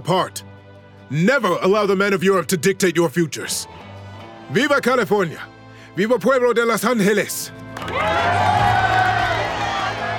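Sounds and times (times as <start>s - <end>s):
speech: 0.0s - 0.5s, 1.1s - 3.9s, 4.5s - 8.8s
crowd of horsemen cheering and shouting in praise: 7.8s - 10.1s
high whoops: 7.8s - 10.1s.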